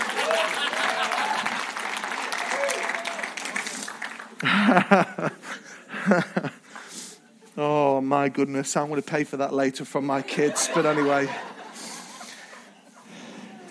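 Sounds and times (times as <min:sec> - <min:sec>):
cheering voices: 0:00.0 - 0:03.8
audience clapping: 0:00.0 - 0:05.2
laughter: 0:00.2 - 0:01.6, 0:04.4 - 0:06.6, 0:10.3 - 0:13.1
speech: 0:04.4 - 0:05.2, 0:08.2 - 0:11.5.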